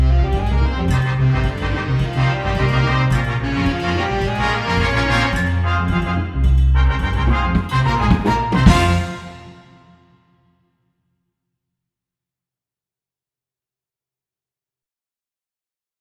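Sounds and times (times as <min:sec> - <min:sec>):
latin blues music: 0:00.0 - 0:09.8.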